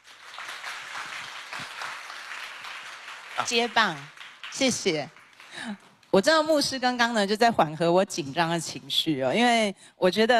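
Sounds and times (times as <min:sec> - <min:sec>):
audience applause: 0:00.0 - 0:05.9
speech: 0:03.4 - 0:10.3.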